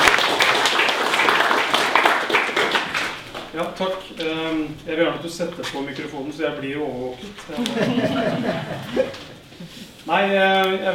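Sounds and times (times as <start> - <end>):
audience applause: 0.0 - 3.5
speech: 3.8 - 10.9
laughter: 7.4 - 9.9.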